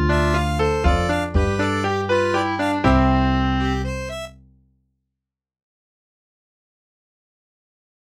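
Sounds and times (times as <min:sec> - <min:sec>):
mazurka: 0:00.0 - 0:04.3.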